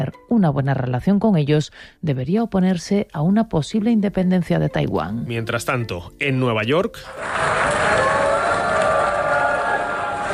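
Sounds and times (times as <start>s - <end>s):
speech: 0.0s - 8.2s
large crowd booing in an assembly hall: 7.1s - 10.3s.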